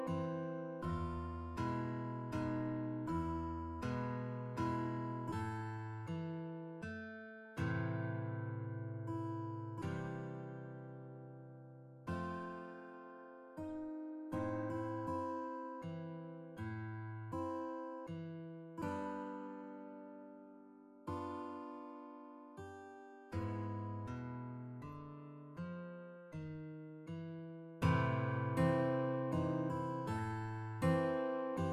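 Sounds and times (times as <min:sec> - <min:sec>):
guitar duet: 0:00.0 - 0:31.7.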